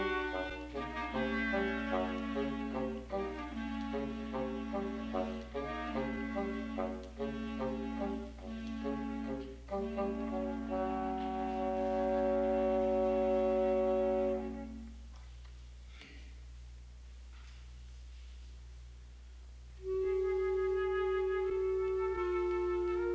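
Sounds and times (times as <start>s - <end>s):
flute: 0.0s - 15.1s, 19.8s - 23.1s
clarinet: 0.0s - 15.2s, 19.8s - 23.1s.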